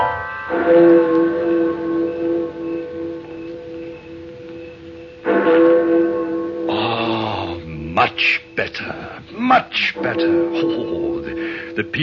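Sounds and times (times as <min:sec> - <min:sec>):
booming cathedral clock bell: 0:00.0 - 0:12.0
speech: 0:00.7 - 0:01.2, 0:08.2 - 0:12.0.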